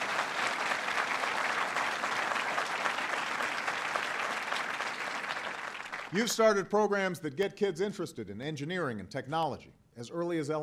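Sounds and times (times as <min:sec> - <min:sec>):
sizable audience applause: 0:00.0 - 0:06.2
speech: 0:06.1 - 0:10.6.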